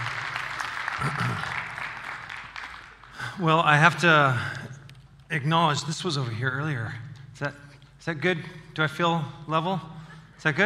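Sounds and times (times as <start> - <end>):
audience applause welcoming a pastor to the stage: 0.0 - 3.7
speech: 3.4 - 4.6, 5.3 - 10.6.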